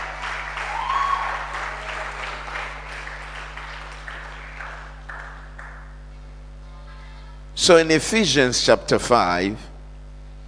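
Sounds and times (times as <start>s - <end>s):
audience clapping: 0.0s - 6.1s
speech: 7.7s - 9.7s.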